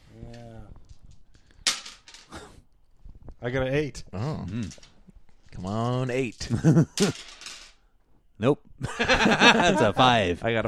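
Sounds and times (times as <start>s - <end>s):
dice rolling on a table: 0.8s - 2.3s, 4.5s - 7.9s
speech: 3.4s - 4.9s, 5.6s - 7.4s, 8.4s - 10.6s
laughter: 6.5s - 7.2s, 8.8s - 10.4s.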